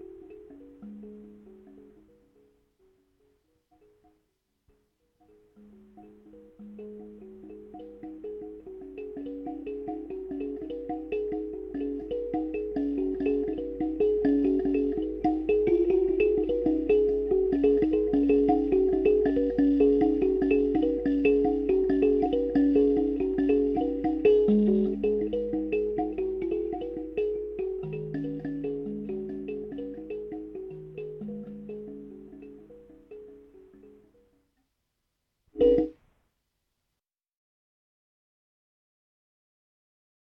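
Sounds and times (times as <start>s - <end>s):
thumb piano: 0.0s - 2.6s, 5.4s - 34.3s, 35.6s - 36.0s.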